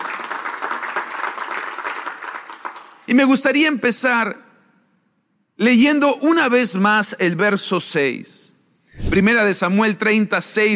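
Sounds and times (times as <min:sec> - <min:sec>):
audience applauding: 0:00.0 - 0:03.1
speech: 0:03.1 - 0:04.4, 0:05.6 - 0:10.7.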